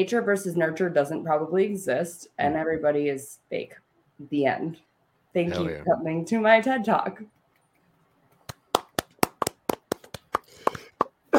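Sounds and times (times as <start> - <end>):
speech: 0.0 - 7.4
slow golf clap: 8.4 - 11.2.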